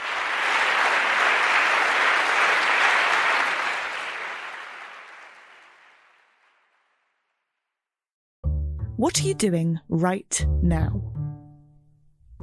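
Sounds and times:
audience applause: 0:00.0 - 0:07.0
speech: 0:09.0 - 0:11.2.

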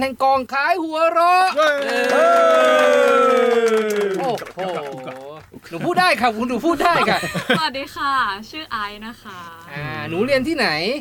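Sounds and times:
speech: 0:00.0 - 0:11.0
welcoming cheers: 0:01.4 - 0:06.0
scattered clapping from a small group: 0:01.6 - 0:06.1, 0:10.8 - 0:11.0
laughter: 0:01.6 - 0:07.8.

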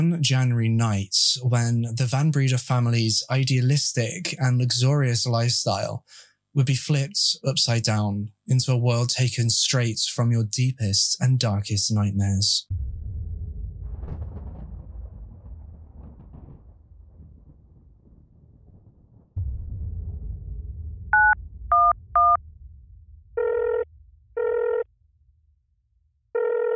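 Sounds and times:
speech: 0:00.0 - 0:13.0
low rumbling wind-like noise: 0:12.6 - 0:26.3
telephone ringing tone: 0:23.4 - 0:23.8, 0:24.4 - 0:24.8, 0:26.4 - 0:26.7.

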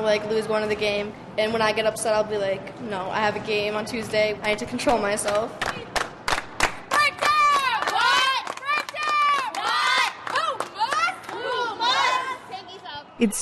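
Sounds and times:
speech: 0:00.0 - 0:05.8, 0:13.2 - 0:13.3
hands clapping: 0:04.9 - 0:11.4
young voices shouting a basketball team cheer: 0:09.0 - 0:12.8.

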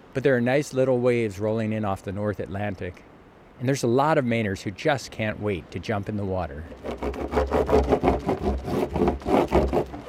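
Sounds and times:
speech: 0:00.2 - 0:10.0
wax rubbed onto a surfboard: 0:06.7 - 0:10.0.

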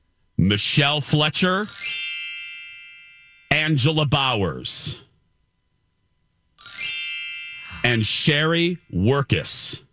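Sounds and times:
speech: 0:00.4 - 0:02.0, 0:03.7 - 0:05.1, 0:07.8 - 0:09.8
twinkling chime sound effect: 0:01.7 - 0:03.5, 0:06.6 - 0:08.5.

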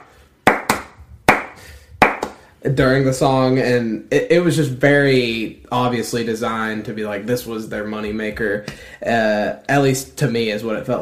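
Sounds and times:
hand claps imitating pop-song claps: 0:00.0 - 0:02.4
speech: 0:02.6 - 0:10.9.

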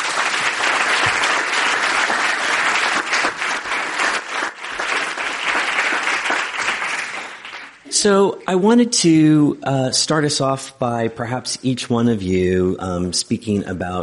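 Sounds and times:
audience applause for panelists: 0:00.0 - 0:07.8
speech: 0:08.0 - 0:14.0.

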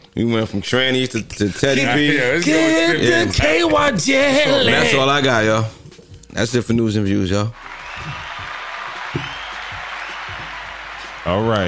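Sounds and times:
speech: 0:00.2 - 0:05.8, 0:06.4 - 0:08.2, 0:11.3 - 0:11.6
hand claps in the studio: 0:07.6 - 0:11.6.

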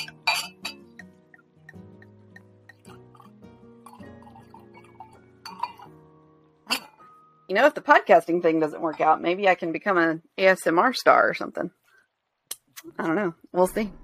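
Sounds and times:
wine being poured into a glass: 0:02.3 - 0:06.0
speech: 0:07.5 - 0:11.8, 0:12.8 - 0:14.0.

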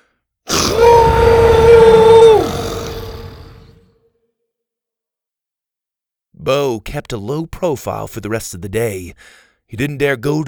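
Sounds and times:
dinosaur roaring: 0:00.5 - 0:03.9
speech: 0:06.5 - 0:10.4.

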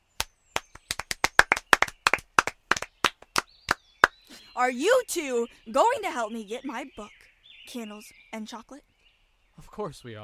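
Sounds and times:
hands clapping in applause: 0:00.2 - 0:03.8
speech: 0:04.6 - 0:08.9, 0:09.6 - 0:10.2.

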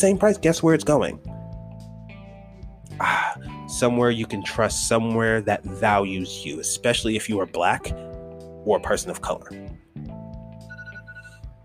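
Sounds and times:
speech: 0:00.0 - 0:01.3, 0:03.0 - 0:09.8
kitchen timer going off: 0:10.7 - 0:11.4.

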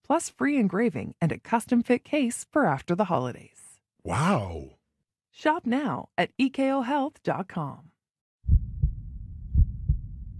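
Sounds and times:
speech: 0:00.1 - 0:04.8, 0:05.4 - 0:07.9
heartbeat through digital stethoscope: 0:08.5 - 0:10.3.

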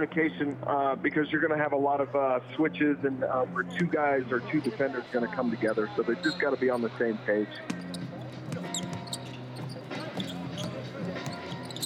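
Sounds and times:
speech: 0:00.0 - 0:08.1
basketball crowd noise: 0:00.0 - 0:11.8
basketball dribbling on a court: 0:07.6 - 0:11.8.

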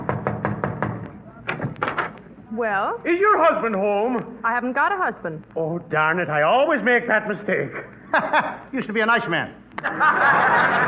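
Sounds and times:
knocking on a door: 0:00.0 - 0:02.1
speech: 0:02.6 - 0:10.8
laughter: 0:07.7 - 0:08.7, 0:09.8 - 0:10.8.

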